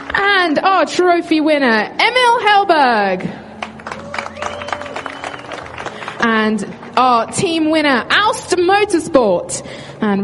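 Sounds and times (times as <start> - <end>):
crowd clapping at a motor race prize ceremony: 0.0 - 0.2, 3.6 - 7.7
speech: 0.4 - 3.4, 6.2 - 10.2.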